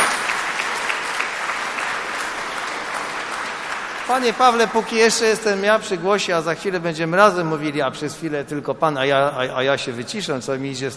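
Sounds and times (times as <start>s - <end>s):
audience applause: 0.0s - 5.7s
speech: 4.1s - 10.9s.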